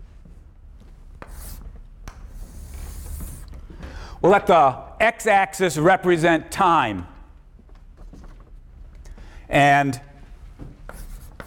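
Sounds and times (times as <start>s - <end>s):
low hum: 0.0s - 11.4s
lecturer drawing graphs on the board: 1.2s - 3.5s, 10.8s - 11.4s
speech: 4.2s - 7.1s, 9.5s - 10.1s.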